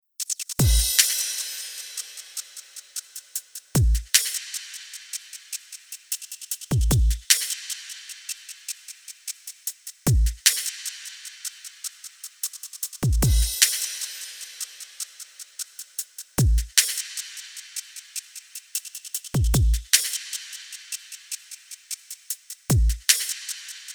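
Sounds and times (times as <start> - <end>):
bass: 0.6 - 0.9, 3.8 - 4.1, 6.8 - 7.2, 10.1 - 10.4, 13.1 - 13.5, 16.4 - 16.7, 19.4 - 19.9, 22.7 - 23.0.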